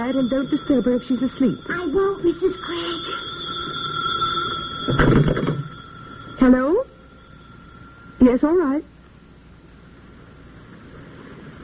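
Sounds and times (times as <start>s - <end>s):
speech: 0.0s - 3.4s, 4.8s - 5.6s, 6.4s - 6.9s, 8.2s - 8.9s
telephone ringing with a high electronic tone: 0.0s - 8.7s.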